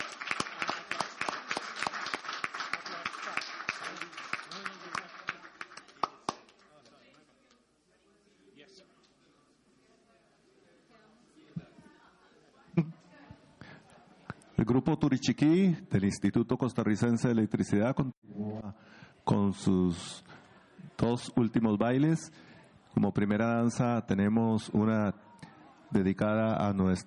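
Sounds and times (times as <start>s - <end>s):
audience applause: 0.0s - 6.9s
speech: 14.7s - 18.2s, 19.2s - 20.3s, 21.0s - 25.2s, 25.9s - 27.0s.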